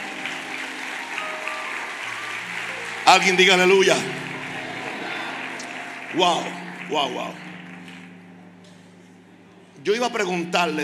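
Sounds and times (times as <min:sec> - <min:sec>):
audience applause: 0:00.0 - 0:09.2
speech: 0:03.1 - 0:04.2, 0:06.1 - 0:07.5, 0:09.8 - 0:10.8.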